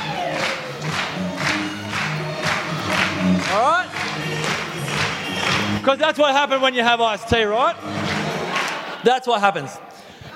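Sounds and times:
audience clapping: 0:00.0 - 0:05.9, 0:07.9 - 0:09.0
speech: 0:05.8 - 0:08.0, 0:09.0 - 0:09.8.

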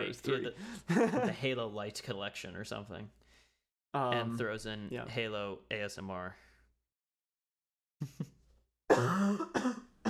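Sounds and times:
speech: 0:00.1 - 0:03.2, 0:03.9 - 0:06.5, 0:08.0 - 0:08.2, 0:08.9 - 0:09.8
coughing: 0:08.9 - 0:10.0.

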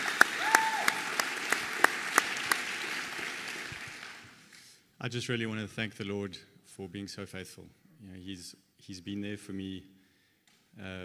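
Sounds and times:
audience applauding a couple: 0:00.0 - 0:04.6
speech: 0:05.0 - 0:10.0, 0:10.8 - 0:11.0.

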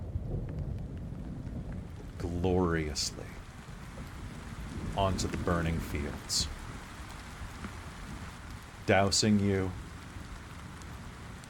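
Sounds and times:
heavy rain from a storm over open plains: 0:00.0 - 0:11.4
low thunder rumbling: 0:00.0 - 0:11.4
speech: 0:02.4 - 0:03.4, 0:05.0 - 0:06.6, 0:08.9 - 0:09.8.

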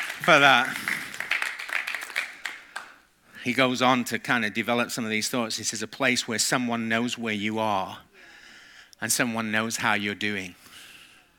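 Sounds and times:
audience applause: 0:00.0 - 0:03.0
speech: 0:00.2 - 0:00.9, 0:03.4 - 0:08.1, 0:09.0 - 0:10.6.

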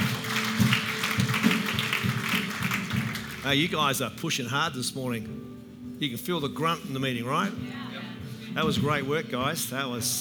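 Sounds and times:
audience clapping: 0:00.0 - 0:04.0
speech: 0:03.4 - 0:07.8, 0:08.5 - 0:10.1.

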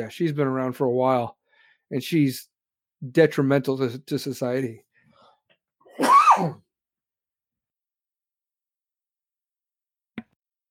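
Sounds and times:
speech: 0:00.0 - 0:04.9, 0:06.0 - 0:06.6
cough: 0:05.9 - 0:06.7.

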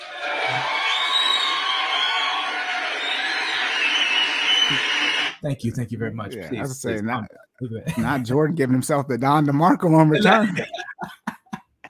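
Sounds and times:
soundboard applause and cheering effect: 0:00.0 - 0:05.4
speech: 0:04.7 - 0:11.1
laughter: 0:07.8 - 0:08.5, 0:10.2 - 0:11.8.

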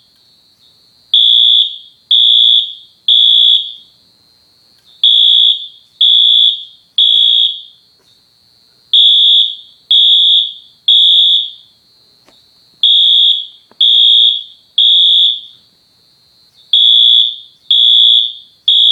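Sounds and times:
Wheelock MT fire alarm on horn code 3: 0:00.0 - 0:04.0, 0:05.0 - 0:07.8, 0:09.0 - 0:11.8, 0:12.8 - 0:15.6, 0:16.6 - 0:18.9.

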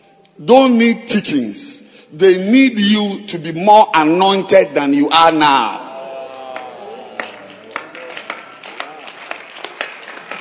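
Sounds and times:
speech: 0:00.4 - 0:05.8
audience clapping: 0:06.2 - 0:10.3.

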